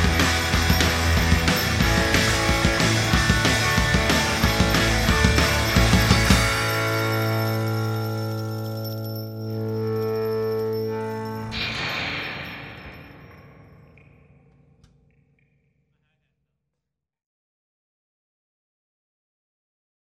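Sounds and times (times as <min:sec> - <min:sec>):
rock Christmas song: 0:00.0 - 0:14.0.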